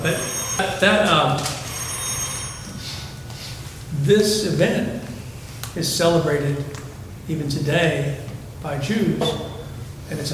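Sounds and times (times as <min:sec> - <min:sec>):
speech: 0:00.0 - 0:01.6, 0:04.1 - 0:05.0, 0:05.8 - 0:09.5, 0:10.1 - 0:10.3
bell ringing: 0:00.0 - 0:03.6.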